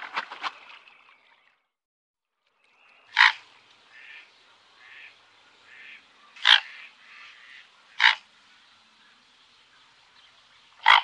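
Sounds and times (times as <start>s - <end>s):
mute swan honking: 3.2s - 8.3s, 10.8s - 11.0s.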